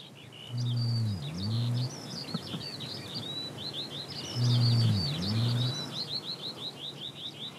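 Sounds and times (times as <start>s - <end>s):
birds chirping: 0.0s - 7.5s
faint insect buzz: 0.5s - 2.6s, 4.3s - 6.0s
rhea booming calls: 0.5s - 2.6s, 4.3s - 5.9s.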